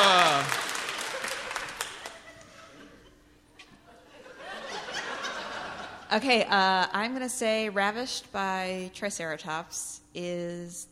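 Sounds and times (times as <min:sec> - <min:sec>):
audience clapping: 0:00.0 - 0:02.4
laughter: 0:00.9 - 0:06.1
speech: 0:06.1 - 0:10.9.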